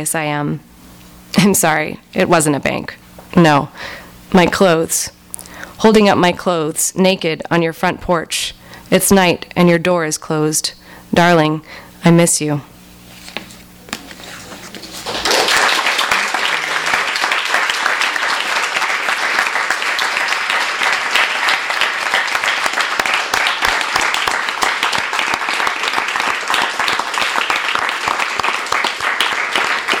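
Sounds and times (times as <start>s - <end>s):
speech: 0.0s - 0.7s, 1.3s - 5.2s, 5.8s - 12.7s
audience applause: 15.0s - 29.9s.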